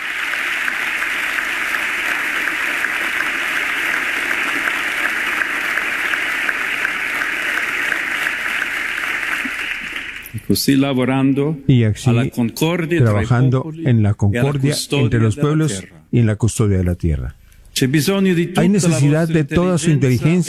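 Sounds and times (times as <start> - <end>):
audience ovation applause: 0.0 - 11.2
speech: 10.5 - 20.4.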